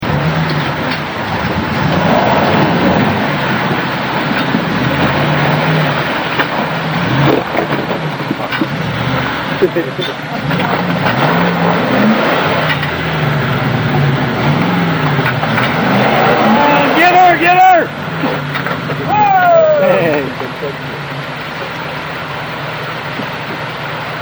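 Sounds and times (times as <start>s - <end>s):
laughter: 0.0s - 18.1s, 18.8s - 21.2s
waterfall: 0.0s - 24.1s.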